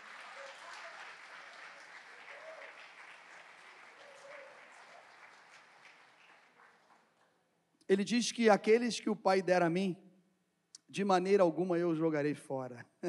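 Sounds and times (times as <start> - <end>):
audience applauding: 0.0 - 7.4
speech: 7.9 - 10.0, 10.9 - 13.0.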